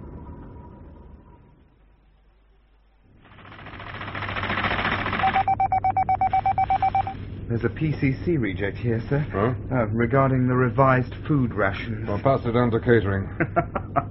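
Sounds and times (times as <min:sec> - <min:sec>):
low mechanical hum of missile conveyor machinery: 0:00.0 - 0:14.0
whirring drive of missile conveyors being tested: 0:03.2 - 0:06.6
speech: 0:07.6 - 0:14.0
laughter: 0:13.2 - 0:14.0.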